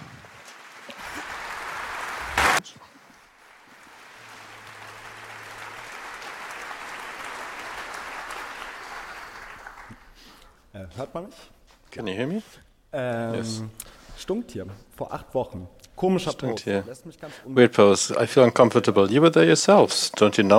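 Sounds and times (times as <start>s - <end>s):
audience applause for speakers: 0.0s - 10.4s
speech: 10.8s - 20.5s.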